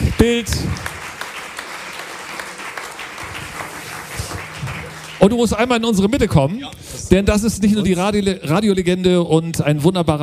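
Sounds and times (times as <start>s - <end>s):
audience applause: 0.0s - 6.4s
speech: 0.2s - 0.9s, 5.2s - 10.2s.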